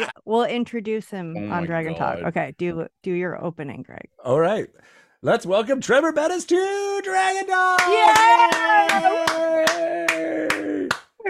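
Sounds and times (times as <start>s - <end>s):
speech: 0.0s - 11.2s
clapping: 7.7s - 11.2s.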